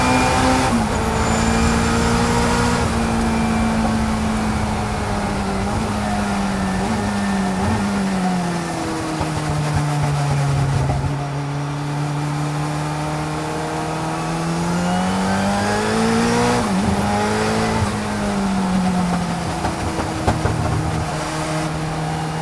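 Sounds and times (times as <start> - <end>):
1986 Toyota Celica IMSA GTO engine through gear changes: 0.0 - 22.4.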